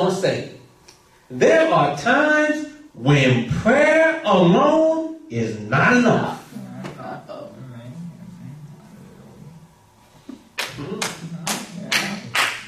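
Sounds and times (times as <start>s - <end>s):
speech: 0.1s - 0.6s, 1.3s - 6.4s
loud sharp hand claps: 10.3s - 12.6s.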